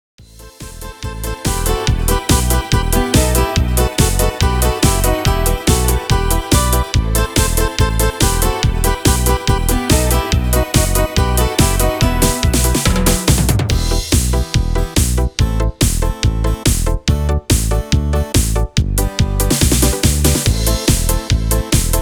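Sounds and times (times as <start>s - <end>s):
disco music: 0.2s - 21.9s.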